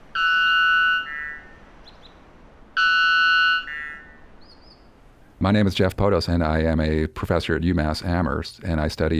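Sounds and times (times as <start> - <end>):
bird singing buzzy phrases: 0.2 - 5.0
speech: 5.4 - 9.1.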